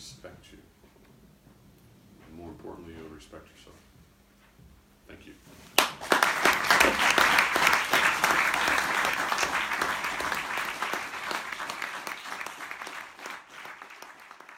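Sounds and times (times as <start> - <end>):
speech: 2.7 - 3.9
audience clapping in a lecture theatre: 5.8 - 14.5.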